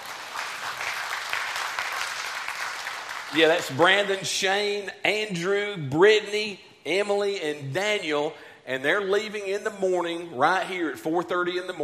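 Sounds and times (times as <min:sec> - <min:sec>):
audience applause: 0:00.0 - 0:03.8
speech: 0:03.3 - 0:11.8.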